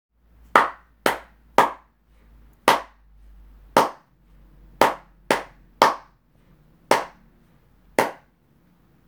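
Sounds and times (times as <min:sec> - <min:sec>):
hand clap: 0:00.6 - 0:01.9, 0:02.7 - 0:03.0, 0:03.8 - 0:04.0, 0:04.8 - 0:06.1, 0:06.9 - 0:07.2, 0:08.0 - 0:08.3.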